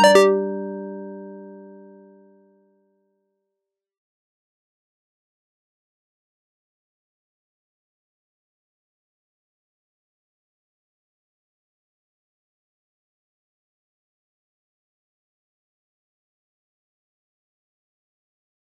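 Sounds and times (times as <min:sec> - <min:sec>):
dry airy house synth pluck: 0:00.0 - 0:01.9.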